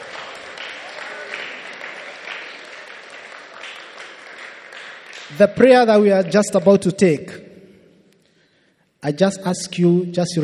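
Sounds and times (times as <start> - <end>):
audience clapping: 0.0 - 7.0
speech: 5.3 - 7.4, 9.0 - 10.4.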